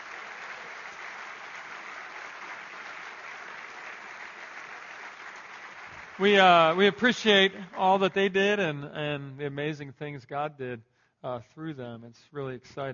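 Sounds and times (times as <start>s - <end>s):
audience applause: 0.0s - 8.3s
speech: 6.2s - 12.9s.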